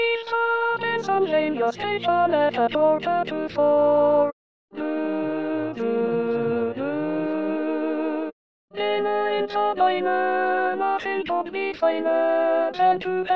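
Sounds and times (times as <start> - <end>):
alto voice singing in SATB choir part: 0.0 - 13.3.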